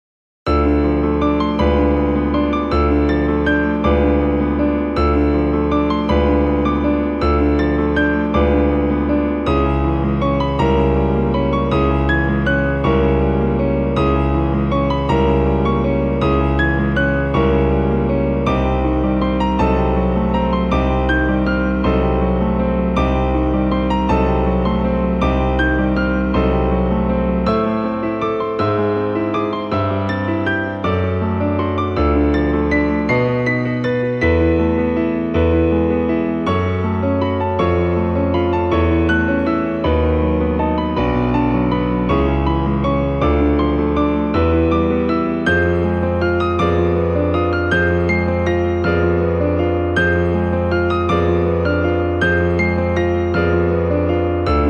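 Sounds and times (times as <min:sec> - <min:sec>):
piano: 0:00.4 - 0:54.6.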